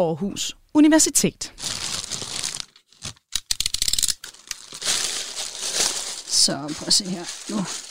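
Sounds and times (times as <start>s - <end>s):
speech: 0.0s - 1.8s, 6.4s - 7.8s
vacuum cleaner bag crinkling and rustling as it is cut open: 1.6s - 3.3s, 4.2s - 7.8s
sharp crackling tears of a vacuum cleaner bag: 1.7s - 7.8s.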